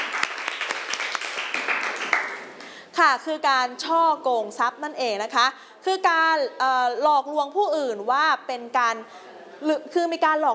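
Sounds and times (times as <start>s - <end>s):
students in a class clapping for themselves: 0.0s - 2.8s
speech: 3.0s - 10.5s.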